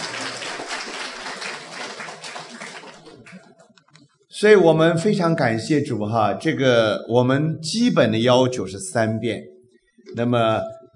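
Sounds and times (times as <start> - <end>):
applause: 0.0 - 3.7
speech: 4.4 - 9.5, 10.1 - 10.8.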